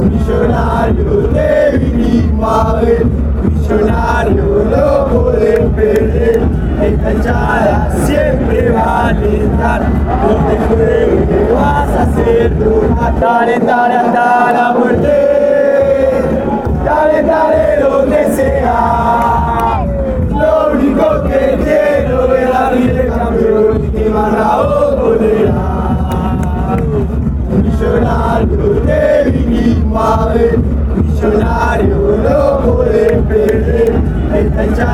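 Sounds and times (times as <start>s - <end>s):
fans chanting in Argentina: 0.0s - 34.9s.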